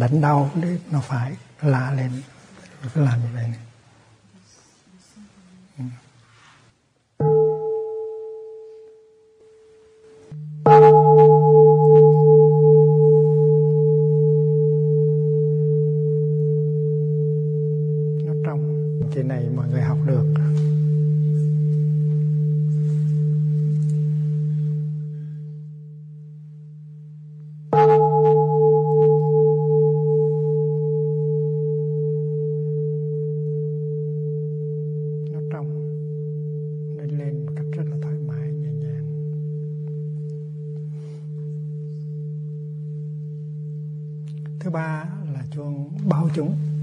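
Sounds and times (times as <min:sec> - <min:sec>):
speech: 0:00.0 - 0:03.7, 0:05.8 - 0:06.0
hanging bell struck: 0:07.2 - 0:46.8.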